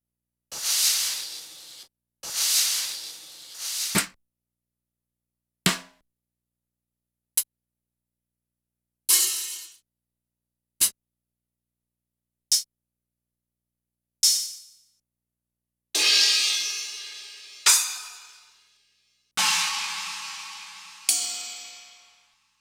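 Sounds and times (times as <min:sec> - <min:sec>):
Korg N5 Street Kit drum slices: 0:00.5 - 0:04.1, 0:16.0 - 0:18.7, 0:19.4 - 0:22.3.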